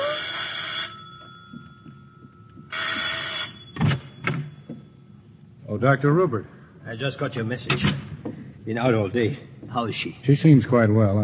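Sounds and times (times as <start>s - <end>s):
shrill bell ringing: 0.0s - 5.0s
speech: 5.7s - 8.1s, 8.7s - 11.2s.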